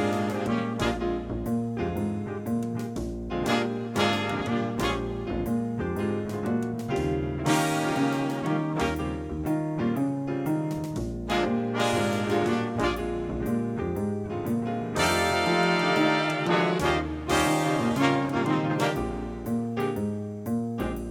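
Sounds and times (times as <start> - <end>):
B-flat blues backing track for wind improvisation: 0.0 - 21.1.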